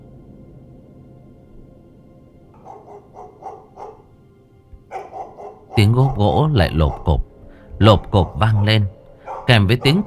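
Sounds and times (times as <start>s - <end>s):
pack of penned dogs barking: 2.5s - 10.0s
speech: 5.8s - 10.0s.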